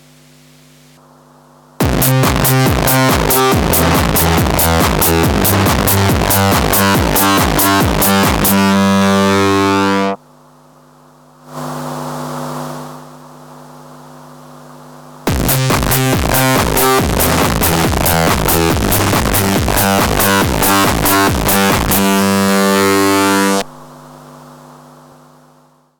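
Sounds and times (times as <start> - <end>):
ultra distortion plus channel overdrive: 1.8 - 10.2, 15.3 - 23.9.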